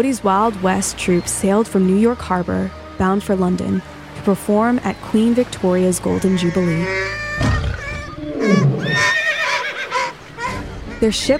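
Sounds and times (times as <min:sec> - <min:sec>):
speech: 0:00.0 - 0:07.2, 0:11.0 - 0:11.3
horse whinnying: 0:06.2 - 0:10.7
horse snorting: 0:06.4 - 0:10.2.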